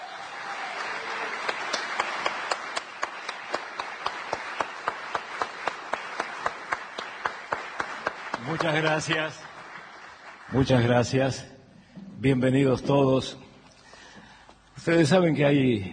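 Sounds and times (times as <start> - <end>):
audience applause welcoming a guest: 0.0 - 11.1
speech: 8.5 - 9.4, 10.5 - 11.5, 12.2 - 13.4, 14.8 - 15.9.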